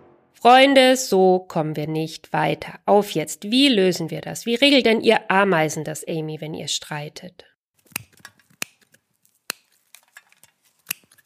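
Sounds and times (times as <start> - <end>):
speech: 0.4 - 8.0
scissors cutting newspaper: 7.8 - 11.2.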